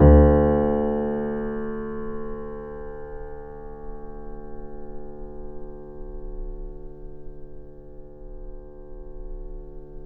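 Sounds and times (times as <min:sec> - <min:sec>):
grand piano: 0:00.0 - 0:05.4.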